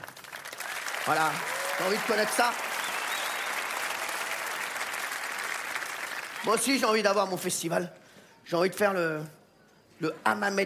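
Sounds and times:
audience applause: 0:00.0 - 0:07.0
speech: 0:01.0 - 0:02.7, 0:06.4 - 0:09.4, 0:10.0 - 0:10.6.

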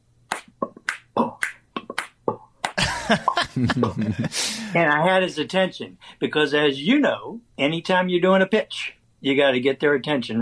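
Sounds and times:
finger snaps: 0:00.3 - 0:02.8
laughter: 0:02.8 - 0:04.8
speech: 0:03.1 - 0:10.4.

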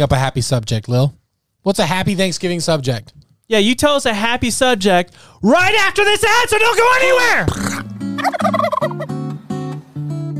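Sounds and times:
speech: 0:00.0 - 0:07.8
turkey gobbling: 0:07.6 - 0:09.1.

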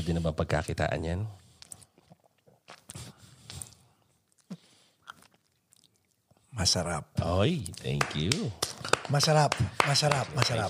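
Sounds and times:
speech: 0:00.0 - 0:01.4, 0:06.6 - 0:10.6
chewing food while tasting it: 0:01.6 - 0:06.4.

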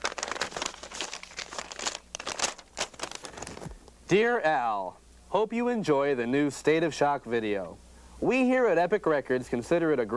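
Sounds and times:
paper letter unfolded and crinkling: 0:00.0 - 0:03.9
speech: 0:04.1 - 0:10.1.

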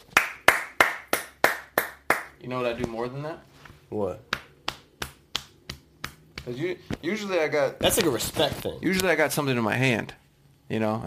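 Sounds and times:
hand clapping: 0:00.0 - 0:02.4, 0:04.3 - 0:06.7
speech: 0:02.4 - 0:04.3, 0:06.4 - 0:11.0.

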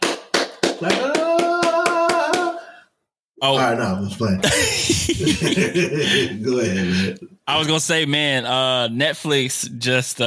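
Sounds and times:
slow handclaps: 0:00.0 - 0:02.6
speech: 0:00.8 - 0:01.1, 0:03.4 - 0:10.2
laughter: 0:04.4 - 0:07.2.

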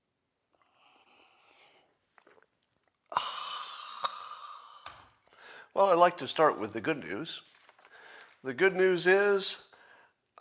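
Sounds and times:
sipping a drink: 0:00.6 - 0:05.5
speech: 0:05.8 - 0:07.6, 0:08.4 - 0:09.7.

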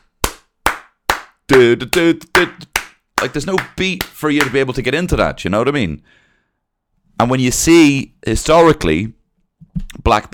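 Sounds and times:
hand claps imitating a late-night talk-show studio audience: 0:00.0 - 0:04.6
speech: 0:01.5 - 0:06.2, 0:07.2 - 0:09.2, 0:09.8 - 0:10.3.

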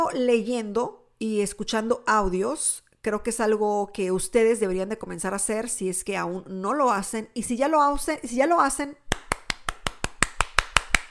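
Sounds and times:
speech: 0:00.1 - 0:09.0
person clapping hands: 0:09.1 - 0:11.1.

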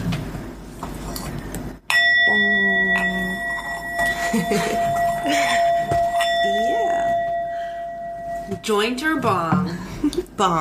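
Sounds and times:
gong: 0:01.9 - 0:09.3
speech: 0:04.4 - 0:05.7, 0:08.6 - 0:10.5.

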